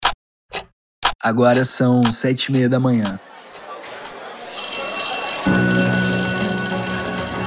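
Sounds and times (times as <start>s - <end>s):
speech: 1.2s - 3.4s
laughter: 2.8s - 7.4s
shrill school siren ringing: 4.6s - 7.4s.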